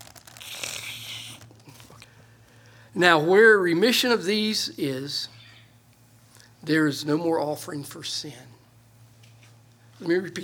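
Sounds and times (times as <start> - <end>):
old glued and taped Bible pages turned and pulled apart: 0.0 - 2.0
speech: 3.0 - 5.4, 6.6 - 8.6, 10.0 - 10.4.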